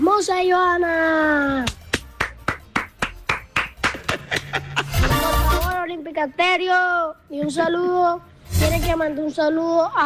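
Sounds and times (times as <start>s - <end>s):
speech: 0.0s - 1.8s, 5.2s - 10.0s
group clapping hands: 1.6s - 5.0s
laughter: 3.7s - 5.5s.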